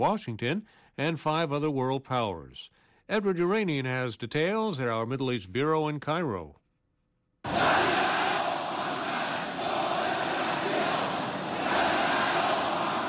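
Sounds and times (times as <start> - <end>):
speech: 0.0 - 6.6, 7.4 - 8.0
crowd applauding at a speech: 7.5 - 13.0.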